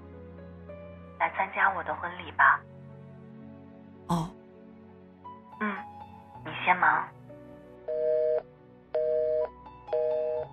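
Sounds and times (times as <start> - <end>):
speech: 1.2 - 2.7, 4.1 - 4.3, 6.7 - 7.2
phone busy tone beeps after a call ends: 7.9 - 8.4, 9.0 - 10.5.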